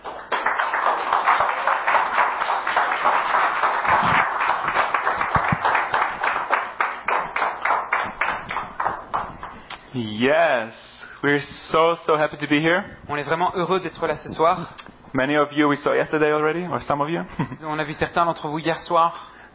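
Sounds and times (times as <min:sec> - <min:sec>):
audience applause: 0:00.0 - 0:09.5
speech: 0:10.0 - 0:19.3.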